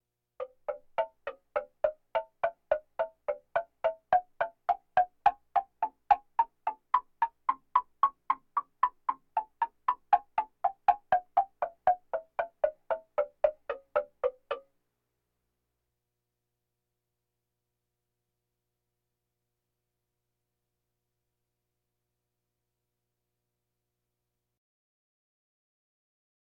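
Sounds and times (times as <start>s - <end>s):
bongos: 0.4s - 14.7s.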